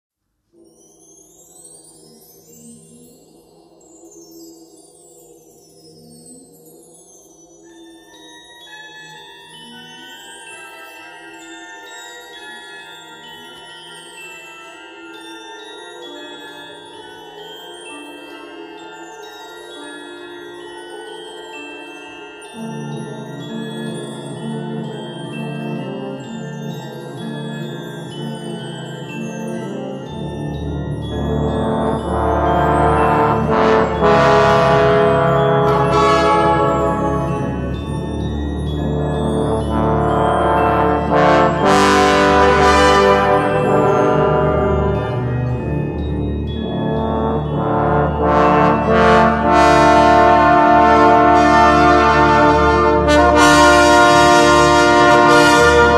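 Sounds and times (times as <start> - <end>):
creepy trombones: 29.8 - 55.9.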